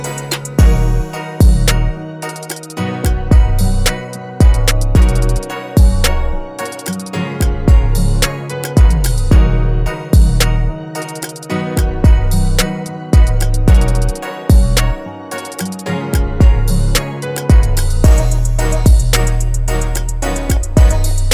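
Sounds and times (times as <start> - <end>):
trap soul guitar music: 0.0 - 21.3.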